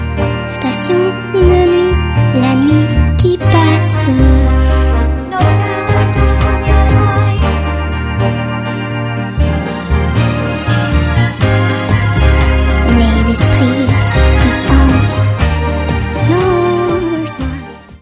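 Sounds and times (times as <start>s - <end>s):
three chords: 0.0s - 18.0s.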